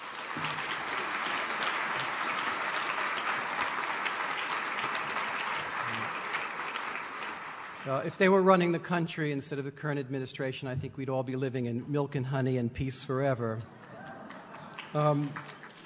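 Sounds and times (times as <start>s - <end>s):
audience round of applause: 0.0s - 8.0s, 13.7s - 15.8s
speech: 7.9s - 13.8s, 14.9s - 15.6s.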